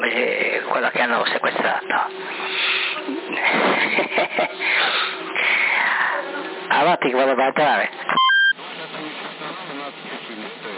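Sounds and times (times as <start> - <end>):
speech: 0.2 - 2.3, 6.8 - 8.1
laughter: 2.9 - 6.3
CB radio transmission beep: 8.1 - 8.6.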